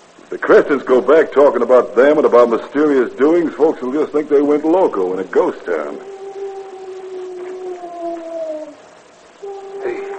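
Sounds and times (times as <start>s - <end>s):
faint hiss: 0.0s - 10.1s
speech: 0.3s - 6.1s
owl hoot used as a signal: 5.7s - 10.1s.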